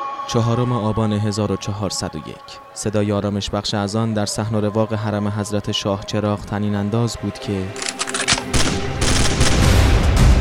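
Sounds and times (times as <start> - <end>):
speech: 0.3 - 8.7
gunfire during a terrorist attack at the Shah Cheragh shrine: 7.8 - 9.6.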